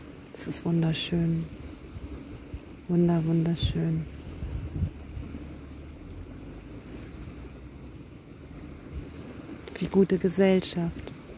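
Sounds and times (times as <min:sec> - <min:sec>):
sea waves on the shore: 0:00.0 - 0:11.3
speech: 0:00.4 - 0:01.6, 0:02.9 - 0:04.2, 0:09.8 - 0:11.1.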